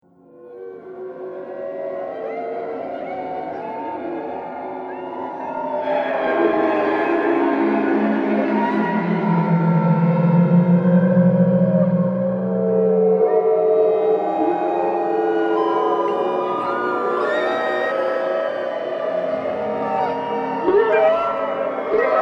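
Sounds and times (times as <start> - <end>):
scary purgatory soundscape: 0.3 - 22.2.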